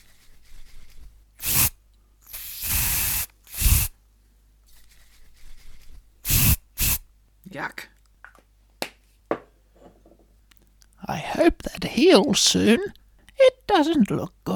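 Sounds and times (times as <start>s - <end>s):
wart spray bursts from an aerosol spray can: 1.4s - 4.0s, 6.2s - 7.0s
speech: 7.6s - 8.0s, 11.1s - 14.5s.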